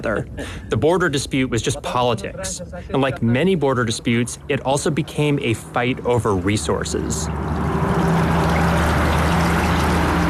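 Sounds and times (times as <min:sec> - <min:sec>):
speech: 0:00.0 - 0:07.7
flowing river water: 0:06.4 - 0:10.2.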